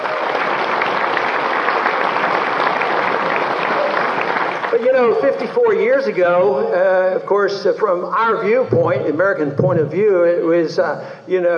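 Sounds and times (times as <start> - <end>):
cheering: 0.0 - 5.7
crowd clapping: 0.0 - 6.4
speech: 5.0 - 11.5.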